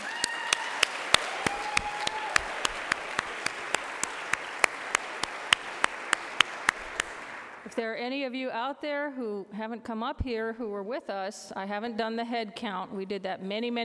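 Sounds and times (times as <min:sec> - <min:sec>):
audience applause: 0:00.0 - 0:07.7
speech: 0:07.8 - 0:13.8.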